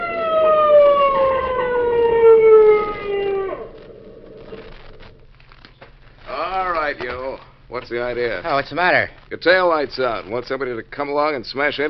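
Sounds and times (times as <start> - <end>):
motorcycle police siren: 0.0 - 5.2
speech: 7.8 - 11.8.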